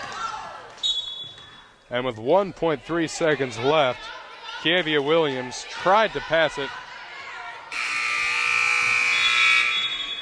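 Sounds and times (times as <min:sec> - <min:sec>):
speech: 0:01.9 - 0:06.8
basketball game-ending buzzer: 0:07.8 - 0:10.1.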